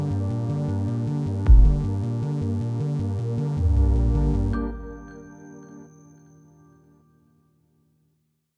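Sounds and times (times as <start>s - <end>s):
electronic music: 0.0s - 6.1s.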